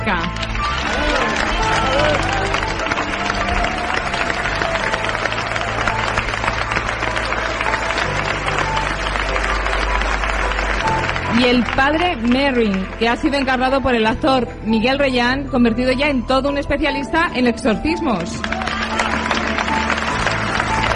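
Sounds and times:
audience applause: 0:00.0 - 0:13.9, 0:18.2 - 0:20.9
speech: 0:11.4 - 0:18.5.

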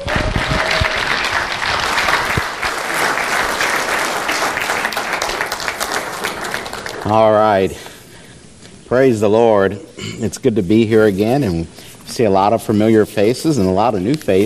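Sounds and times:
audience applause welcoming a preacher: 0:00.0 - 0:07.4
speech: 0:07.1 - 0:07.9, 0:08.9 - 0:14.4.

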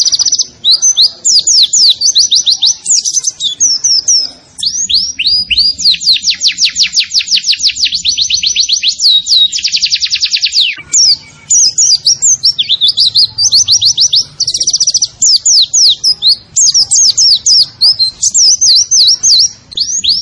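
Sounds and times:
white-eye chirping song: 0:00.0 - 0:20.1.

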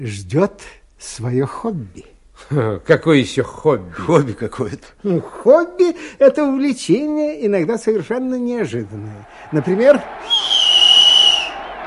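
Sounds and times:
speech: 0:00.0 - 0:10.6
football fans whistling: 0:09.2 - 0:11.8.

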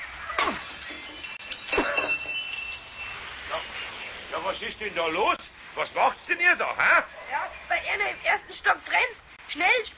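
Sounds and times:
workshop window glass shattering from a thrown paving stone: 0:00.3 - 0:03.3
glass tinkling: 0:00.4 - 0:03.8
speech: 0:04.5 - 0:09.9.

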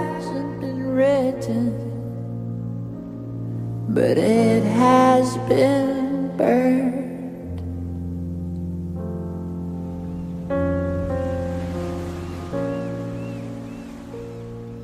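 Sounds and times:
emotional singing voice: 0:00.0 - 0:02.2, 0:03.9 - 0:07.6
piano: 0:00.0 - 0:14.8
speech: 0:01.0 - 0:01.9, 0:03.9 - 0:07.0
sea waves in a song: 0:09.7 - 0:14.8.

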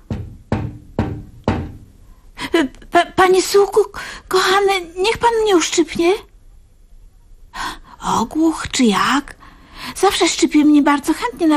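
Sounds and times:
knocking on a window: 0:00.0 - 0:02.0
speech: 0:02.6 - 0:06.3, 0:07.6 - 0:09.4, 0:10.0 - 0:11.5.

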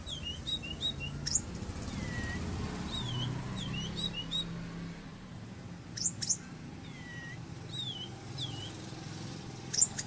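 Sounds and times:
orange-headed thrush singing high thin phrases and sharp chips: 0:00.0 - 0:04.6, 0:05.9 - 0:10.0.

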